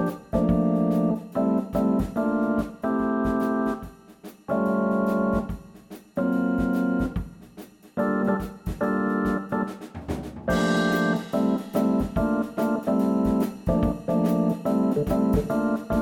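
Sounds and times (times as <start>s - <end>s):
shuffle backing track: 0.0s - 16.0s
bass trombone playing a shuffle etude: 10.5s - 13.2s, 14.1s - 15.8s.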